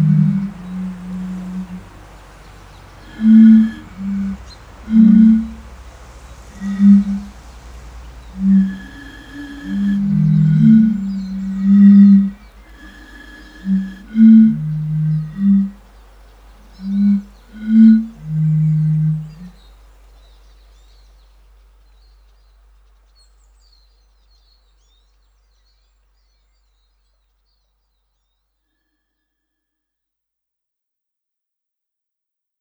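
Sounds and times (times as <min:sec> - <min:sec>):
European fire-bellied toads calling: 0:00.0 - 0:19.6.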